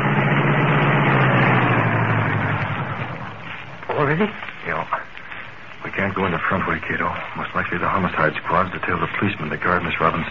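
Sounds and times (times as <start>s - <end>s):
car engine idling after parking in an alley: 0.0s - 10.3s
speech: 4.2s - 4.4s, 6.2s - 10.3s.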